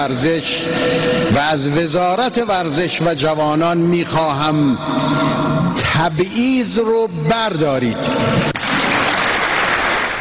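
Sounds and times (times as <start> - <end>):
speech: 0.0 - 8.6
audience applause at a talk show: 8.5 - 10.2.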